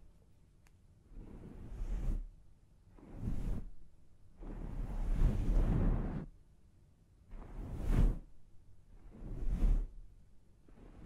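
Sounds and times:
low steady hum: 0.0 - 11.0
hair washing and scalp massage rubbing swishes: 1.1 - 2.3, 2.9 - 6.3, 7.3 - 11.0.

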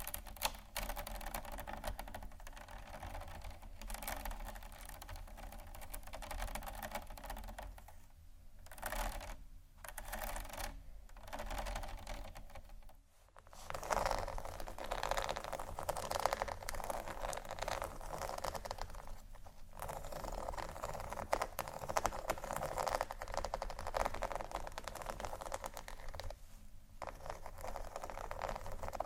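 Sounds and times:
fast dry scratches and taps: 0.0 - 8.1, 8.7 - 26.4, 27.0 - 29.0.

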